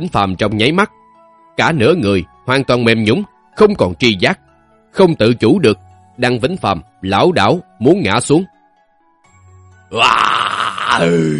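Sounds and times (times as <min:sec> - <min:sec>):
speech: 0:00.0 - 0:01.0, 0:01.6 - 0:08.5, 0:09.9 - 0:11.3
deep anguished roar of a wounded man: 0:09.9 - 0:11.3.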